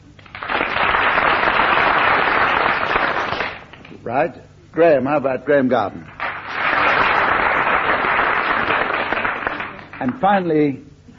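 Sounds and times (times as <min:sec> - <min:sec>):
studio audience applause: 0:00.2 - 0:03.9, 0:06.1 - 0:10.2
speech: 0:04.1 - 0:06.1, 0:10.0 - 0:10.9.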